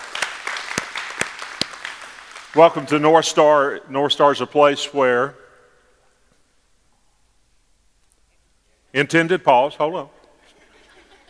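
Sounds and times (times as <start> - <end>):
crowd praise clapping: 0.0 - 3.0
speech: 2.5 - 5.4, 9.0 - 10.2
laughter: 10.4 - 11.2.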